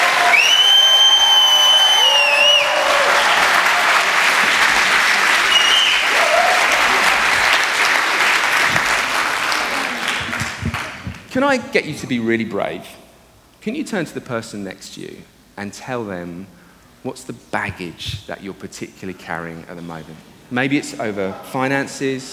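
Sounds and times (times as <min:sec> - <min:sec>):
audience applause: 0:00.0 - 0:11.3
high whistles: 0:00.1 - 0:03.7, 0:05.3 - 0:06.4
speech: 0:11.4 - 0:13.0, 0:13.6 - 0:22.3.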